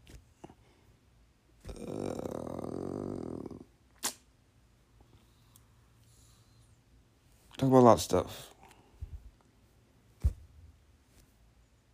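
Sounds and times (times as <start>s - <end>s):
dog waking from a stupor groaning: 1.6s - 3.7s
speech: 7.6s - 8.5s.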